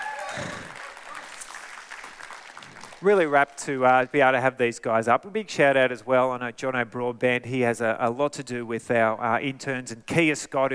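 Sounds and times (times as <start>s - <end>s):
audience applause: 0.0s - 3.6s
speech: 0.4s - 0.7s, 3.0s - 10.7s.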